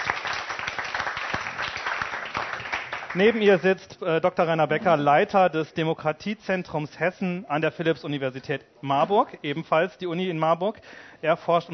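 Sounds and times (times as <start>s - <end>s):
audience applause: 0.0s - 3.6s
speech: 3.1s - 11.7s.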